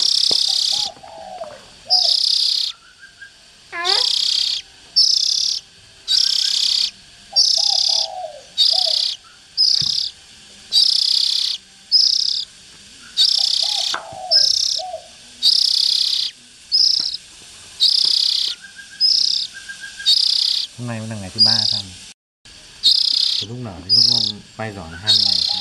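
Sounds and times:
Oriental magpie-robin harsh hissing rasps: 0:00.0 - 0:03.0, 0:03.7 - 0:12.5, 0:13.1 - 0:17.2, 0:17.8 - 0:20.8, 0:21.4 - 0:22.0, 0:22.8 - 0:25.5
speech: 0:20.8 - 0:22.1, 0:23.4 - 0:25.5.

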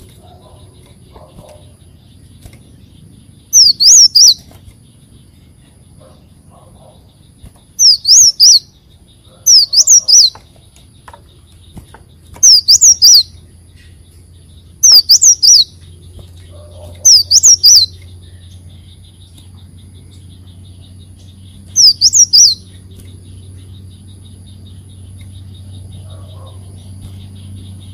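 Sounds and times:
leafbird whistling: 0:00.0 - 0:05.0, 0:06.0 - 0:10.5, 0:11.5 - 0:27.9
low steady hum: 0:00.0 - 0:27.9.

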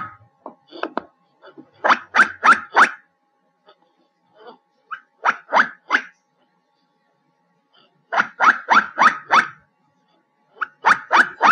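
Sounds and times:
black giant squirrel harsh chirping barks: 0:01.8 - 0:03.0, 0:04.9 - 0:06.2, 0:08.1 - 0:09.6, 0:10.6 - 0:11.4.

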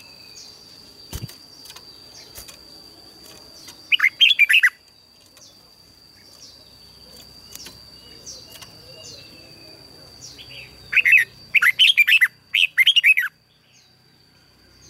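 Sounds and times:
red-whiskered bulbul song: 0:00.0 - 0:14.8.

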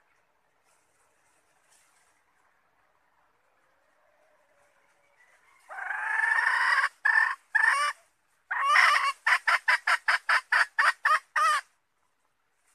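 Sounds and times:
red junglefowl calling: 0:04.0 - 0:12.2.

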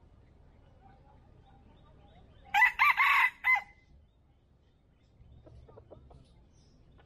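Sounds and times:
red junglefowl crowing: 0:02.5 - 0:03.8.

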